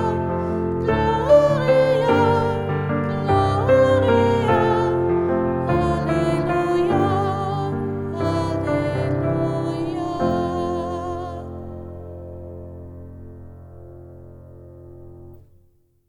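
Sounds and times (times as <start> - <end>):
choir singing a Gloria: 0.0 - 12.0.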